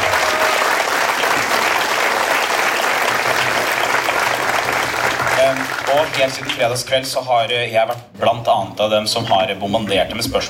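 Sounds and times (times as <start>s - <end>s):
audience applause: 0.0s - 6.9s
speech: 5.9s - 10.4s.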